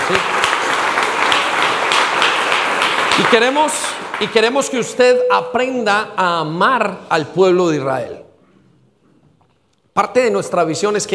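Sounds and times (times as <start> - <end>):
big audience applause: 0.0 - 4.8
speech: 0.1 - 0.4, 3.2 - 8.3, 10.0 - 11.1.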